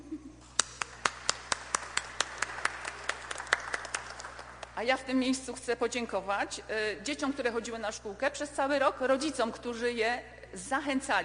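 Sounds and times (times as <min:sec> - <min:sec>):
children clapping applause: 0:00.6 - 0:04.8
speech: 0:04.8 - 0:11.2.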